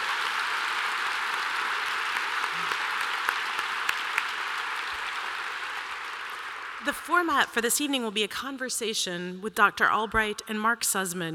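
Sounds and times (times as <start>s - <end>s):
audience applause: 0.0s - 6.9s
speech: 6.8s - 11.3s.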